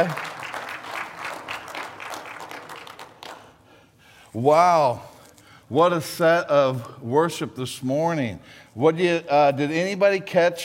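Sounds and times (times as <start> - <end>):
speech: 0.0 - 0.2, 4.4 - 5.1, 5.7 - 10.6
audience clapping: 0.0 - 3.8.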